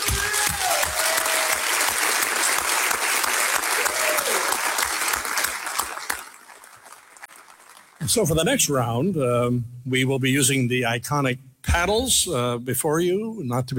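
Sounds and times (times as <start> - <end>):
audience applause for candidates: 0.0 - 8.0
speech: 8.1 - 13.7.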